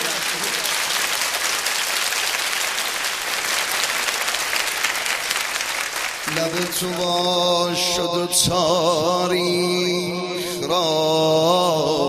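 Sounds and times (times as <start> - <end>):
crowd applauding at a religious celebration honouring Ali: 0.0 - 7.6
speech: 6.4 - 11.6.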